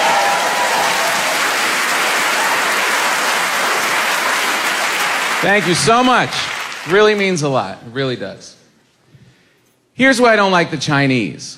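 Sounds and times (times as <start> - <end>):
audience applause: 0.0 - 7.4
speech: 5.4 - 8.6, 10.0 - 11.5.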